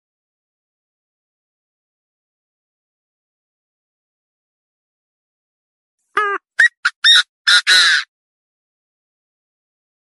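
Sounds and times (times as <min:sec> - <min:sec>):
partridge calls and squawks: 0:06.2 - 0:08.0.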